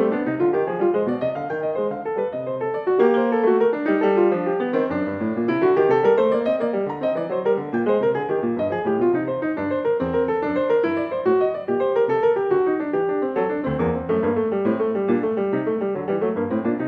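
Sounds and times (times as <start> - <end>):
baroque keyboard suite gigue in G minor: 0.0 - 16.8.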